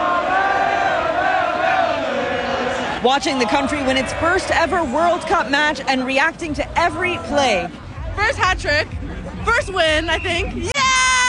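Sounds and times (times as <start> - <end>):
thousands of football fans cheering at FIFA Fan Fest at Fort York in Toronto: 0.0 - 11.2
speech: 3.0 - 10.7.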